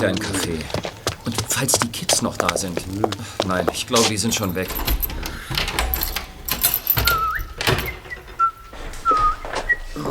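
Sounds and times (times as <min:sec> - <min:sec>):
speech: 0:00.0 - 0:05.7
whistling: 0:06.9 - 0:10.0.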